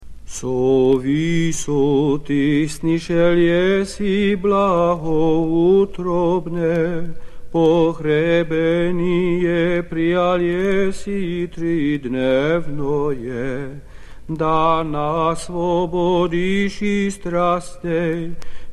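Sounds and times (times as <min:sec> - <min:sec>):
tone 8 liturgical troparion chant: 0:00.3 - 0:18.7.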